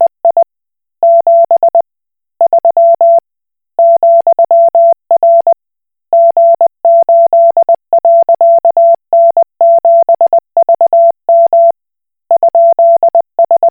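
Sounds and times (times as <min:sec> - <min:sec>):
Koch Morse code beeps: 0:00.0 - 0:01.8, 0:03.8 - 0:05.5, 0:06.2 - 0:11.7, 0:12.4 - 0:13.6.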